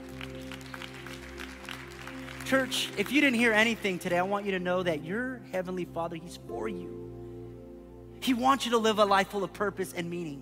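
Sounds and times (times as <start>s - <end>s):
crowd clapping: 0.0s - 3.3s
speech: 2.5s - 7.1s, 8.2s - 10.4s.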